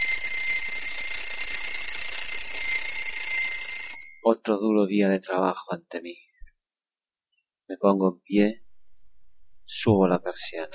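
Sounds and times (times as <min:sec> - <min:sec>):
alarm clock ringing: 0:00.0 - 0:04.3
speech: 0:04.3 - 0:06.3, 0:07.7 - 0:08.6, 0:09.7 - 0:10.7.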